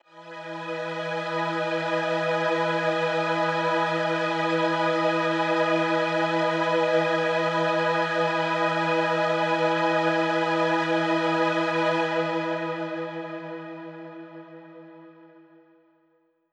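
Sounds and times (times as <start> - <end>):
synth orchestra strings in E major: 0.1 - 14.0.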